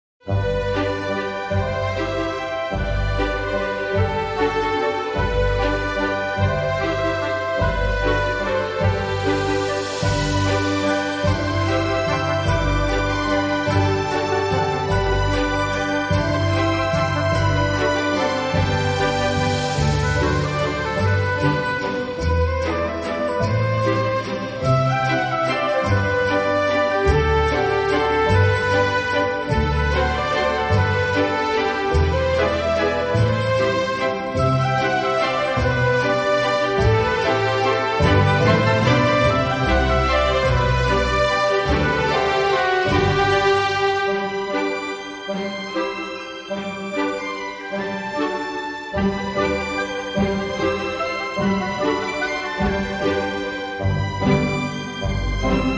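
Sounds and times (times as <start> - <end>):
orchestral music: 0.2 - 55.7.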